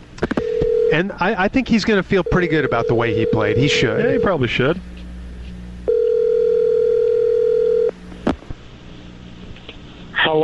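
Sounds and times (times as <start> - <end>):
telephone line tone: 0.3 - 1.0, 2.2 - 4.4, 5.9 - 7.9
speech: 0.9 - 4.9.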